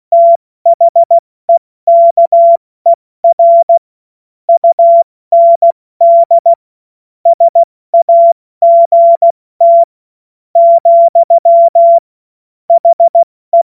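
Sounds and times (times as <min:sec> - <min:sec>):
CW Morse code beeps: 0:00.1 - 0:01.2, 0:01.9 - 0:02.6, 0:03.2 - 0:03.8, 0:04.5 - 0:06.6, 0:07.3 - 0:09.9, 0:10.6 - 0:12.0, 0:12.7 - 0:13.6.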